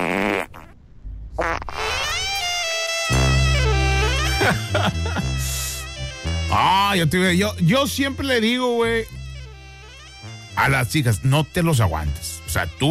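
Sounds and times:
fart sound effect: 0.0s - 4.6s
laughter: 4.2s - 5.8s
speech: 6.9s - 9.2s, 10.6s - 12.8s.

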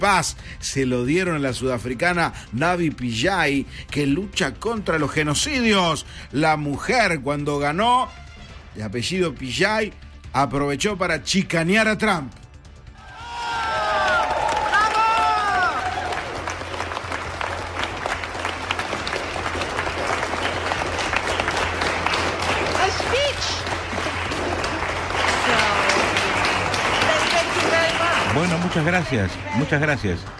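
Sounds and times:
speech: 0.0s - 8.2s, 8.8s - 12.4s, 28.7s - 30.3s
scattered cheers and whistles: 13.0s - 16.5s
large audience applause: 13.0s - 30.3s.

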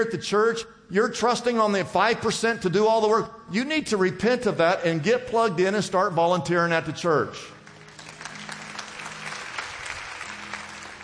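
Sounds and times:
speech: 0.0s - 7.6s
scattered audience clapping: 7.6s - 11.0s.

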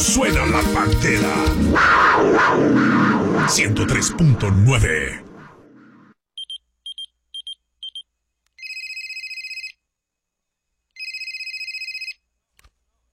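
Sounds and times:
speech: 0.0s - 5.3s
telephone ringing: 8.6s - 9.8s, 11.0s - 12.2s.

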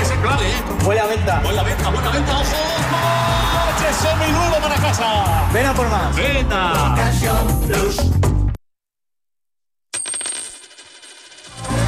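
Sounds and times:
speech: 0.8s - 8.3s
euro coin dropping and spinning: 10.0s - 11.8s.

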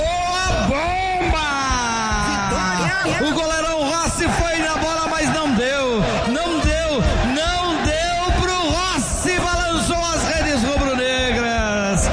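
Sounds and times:
stadium crowd roaring after a goal at Estádio Mano Barradas: 0.0s - 12.1s.

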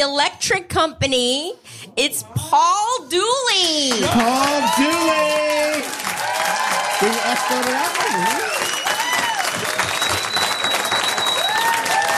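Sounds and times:
speech: 0.0s - 6.1s, 7.0s - 8.6s
studio audience applause for a talk-show guest: 3.9s - 12.1s
whistle: 8.5s - 11.9s.

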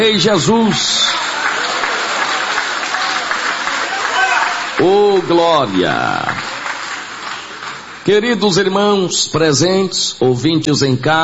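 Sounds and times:
speech: 0.0s - 1.0s, 4.8s - 6.4s, 8.0s - 11.2s
audience applauding: 0.5s - 8.2s.

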